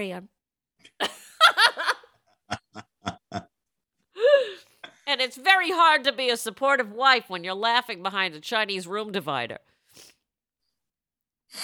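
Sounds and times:
speech: 0.0s - 1.0s, 5.2s - 10.1s
person sniffing: 9.8s - 10.3s.

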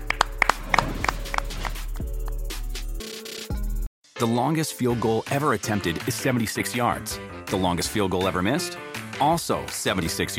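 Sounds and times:
hand claps: 0.0s - 2.8s
speech: 4.2s - 10.3s.

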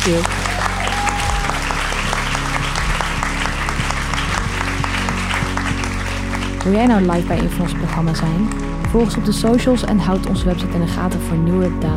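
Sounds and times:
speech: 0.0s - 0.6s, 6.6s - 11.9s
live audience applause: 0.0s - 9.2s.

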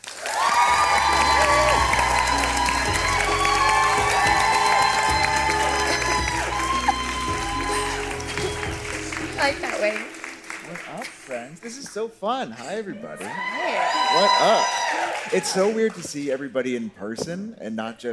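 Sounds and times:
audience cheering: 0.0s - 11.4s, 12.9s - 16.2s
audience applause: 0.0s - 16.6s
speech: 11.6s - 18.1s.

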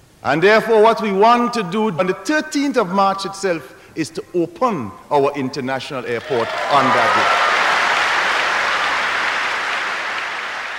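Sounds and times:
speech: 0.2s - 7.4s
audience cheering and applauding: 6.2s - 10.7s.

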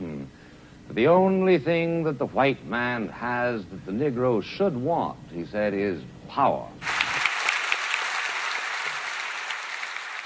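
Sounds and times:
speech: 1.0s - 6.9s
audience applause in a grand hall: 6.8s - 10.2s.

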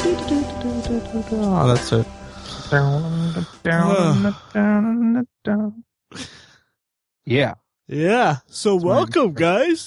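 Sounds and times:
speech: 0.2s - 6.3s, 7.3s - 9.8s
person yawning: 2.5s - 4.6s.

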